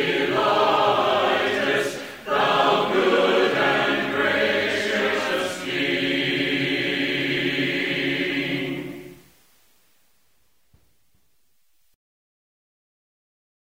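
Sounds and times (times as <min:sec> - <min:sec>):
hymn: 0:00.0 - 0:09.3.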